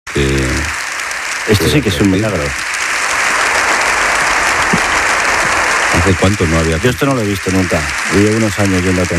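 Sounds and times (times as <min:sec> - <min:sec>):
standing audience in the Spanish Congress applauding a speaker: 0:00.1 - 0:09.1
speech: 0:01.5 - 0:02.9, 0:06.0 - 0:09.1.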